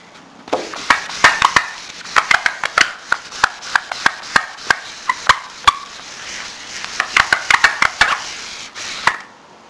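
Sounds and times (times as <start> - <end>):
whiteboard being erased: 0.6 - 9.3.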